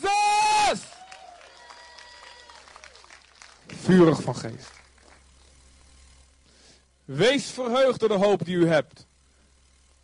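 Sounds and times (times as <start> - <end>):
faint voices cheering: 0.0 - 3.2
audience applause: 0.8 - 5.3
speech: 3.9 - 4.8, 7.1 - 9.1.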